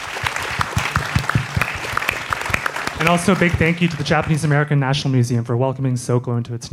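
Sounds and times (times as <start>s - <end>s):
audience applause: 0.0s - 4.8s
speech: 3.0s - 6.7s.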